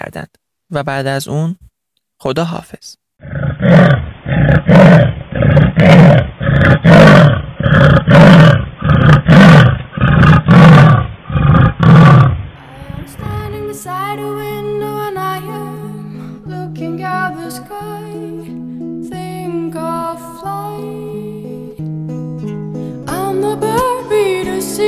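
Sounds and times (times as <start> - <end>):
speech: 0.0 - 6.1
short growl of a leopard: 3.2 - 13.5.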